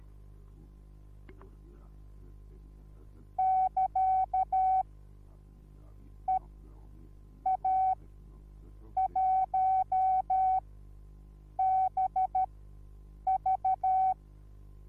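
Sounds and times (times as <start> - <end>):
morse code beeps: 3.4 - 4.8, 7.4 - 8.0, 9.0 - 10.6, 11.6 - 12.5, 13.3 - 14.2.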